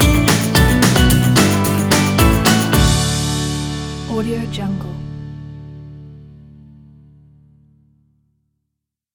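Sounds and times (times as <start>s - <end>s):
happy upbeat positive folk music: 0.0s - 5.7s.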